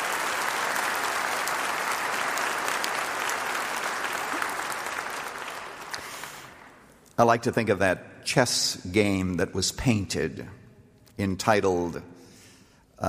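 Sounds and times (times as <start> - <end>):
audience applause: 0.0 - 6.8
speech: 7.2 - 10.6, 11.2 - 12.1.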